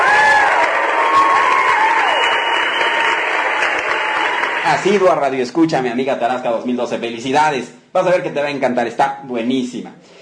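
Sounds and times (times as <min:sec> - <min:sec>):
cheering: 0:00.0 - 0:05.2
crowd applause: 0:00.0 - 0:05.2
high whistles: 0:01.2 - 0:03.2
speech: 0:04.7 - 0:10.1.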